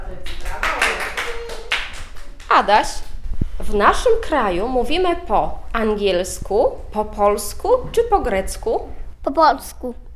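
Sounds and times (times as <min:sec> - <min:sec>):
hand claps during a children's quiz lesson: 0:00.2 - 0:03.2
speech: 0:02.6 - 0:10.0.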